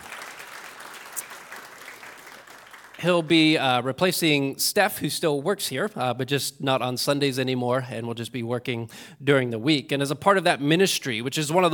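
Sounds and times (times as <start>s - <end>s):
church congregation applause during a Sunday service: 0.0s - 3.6s
speech: 3.0s - 11.7s.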